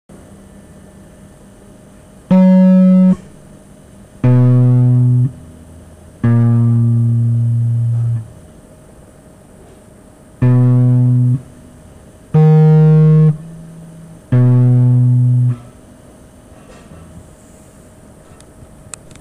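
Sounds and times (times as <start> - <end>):
guitar: 2.3 - 3.6, 4.2 - 8.5, 10.4 - 15.8.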